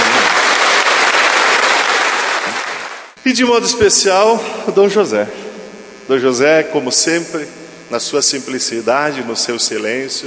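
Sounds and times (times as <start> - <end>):
audience applauding: 0.0 - 3.2
speech: 3.3 - 5.4, 6.1 - 10.2.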